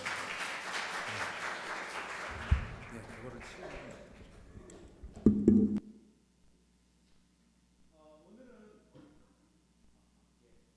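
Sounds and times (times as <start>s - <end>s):
audience applause: 0.0s - 4.6s.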